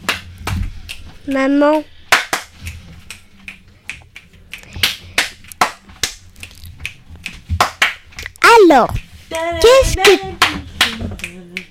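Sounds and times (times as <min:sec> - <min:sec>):
speech: 0:01.3 - 0:01.9, 0:08.7 - 0:10.3
finger snapping: 0:02.2 - 0:07.4.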